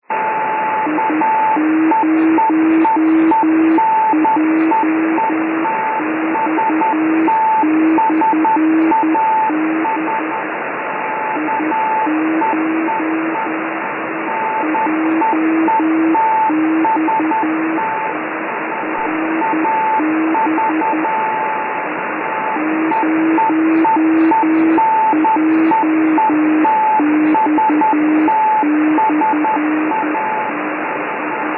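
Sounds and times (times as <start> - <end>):
beacon signal: 0.1 - 31.5.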